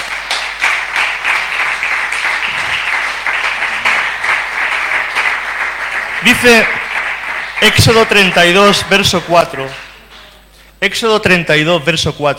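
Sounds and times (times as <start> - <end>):
audience applauding: 0.0 - 10.3
speech: 6.2 - 6.8, 7.6 - 9.8, 10.8 - 12.3.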